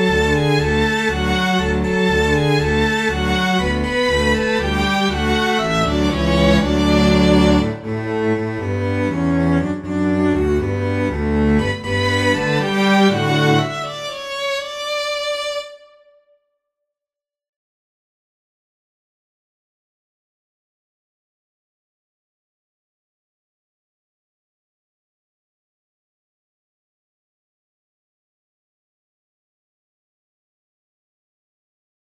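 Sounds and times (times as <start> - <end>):
dueling violins: 0.0 - 16.2.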